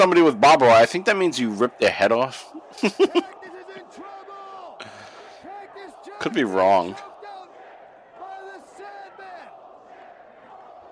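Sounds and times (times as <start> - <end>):
speech: 0.0 - 3.4, 6.2 - 7.1
wrestling crowd chanting at a barbed-wire match: 0.1 - 10.9
laughter: 2.4 - 4.2.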